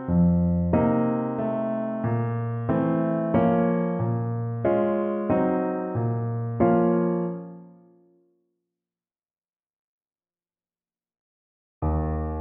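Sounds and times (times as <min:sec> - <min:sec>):
piano: 0:00.0 - 0:08.4, 0:11.8 - 0:12.3.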